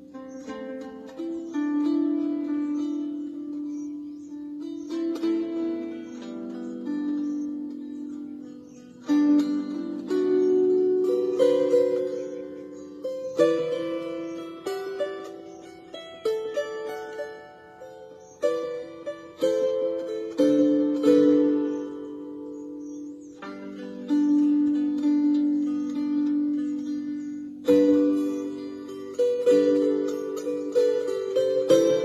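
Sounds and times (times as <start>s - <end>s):
lyre harp: 0.0s - 32.0s.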